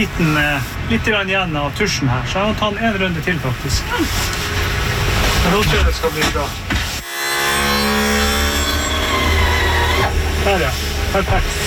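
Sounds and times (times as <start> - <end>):
speech: 0.0 - 4.5, 5.4 - 6.9, 10.4 - 11.6
new sanding machine running: 7.0 - 10.6.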